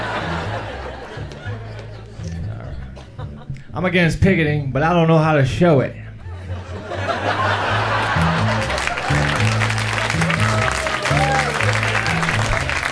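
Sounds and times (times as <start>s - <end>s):
laughter: 0.0s - 3.5s, 6.2s - 12.9s
speech: 3.7s - 6.0s
sporadic audience applause: 7.8s - 12.9s.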